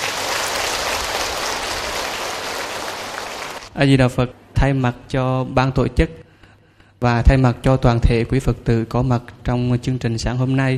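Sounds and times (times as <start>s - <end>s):
audience applause: 0.0s - 3.7s
speech: 3.8s - 6.3s, 7.0s - 10.7s.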